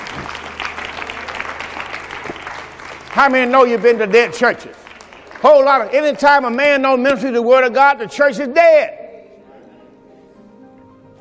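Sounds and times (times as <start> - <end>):
audience clapping hands: 0.0 - 6.5
speech: 3.2 - 4.8, 5.4 - 9.0.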